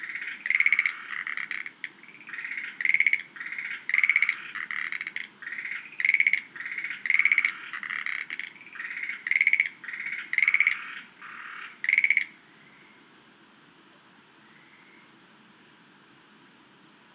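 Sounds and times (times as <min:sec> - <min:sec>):
Schlegel's green tree frog calling: 0:00.0 - 0:13.0.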